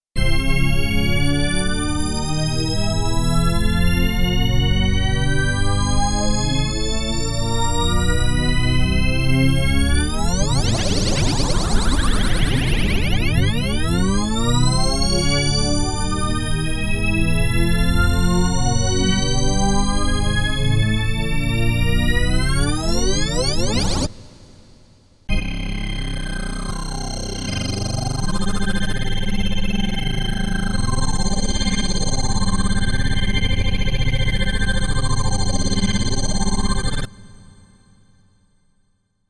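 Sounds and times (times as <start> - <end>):
Korg Radias-R synthesizer: 0.2 - 24.1, 25.3 - 38.3.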